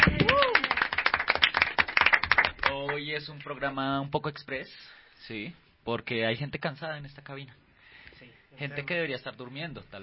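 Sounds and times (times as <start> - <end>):
hand clapping by people in a radio studio: 0.0 - 3.0
speech: 3.2 - 7.6, 8.2 - 10.0.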